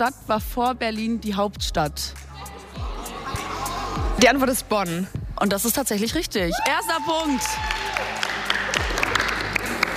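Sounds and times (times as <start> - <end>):
speech: 0.0 - 2.9, 4.0 - 8.3
eighth-grade Realschule class clapping and cheering after a correct quiz answer: 6.6 - 9.9.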